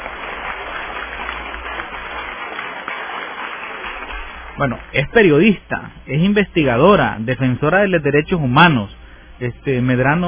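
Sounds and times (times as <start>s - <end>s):
crowd clapping: 0.0s - 7.5s
speech: 4.6s - 10.2s.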